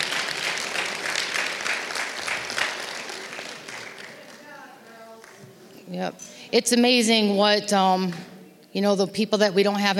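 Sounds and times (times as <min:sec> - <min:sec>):
audience applause: 0:00.0 - 0:05.4
speech: 0:05.9 - 0:09.9.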